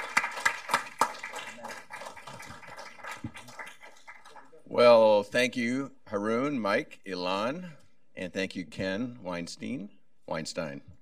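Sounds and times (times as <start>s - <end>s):
audience applause: 0.0s - 4.6s
speech: 4.8s - 10.8s.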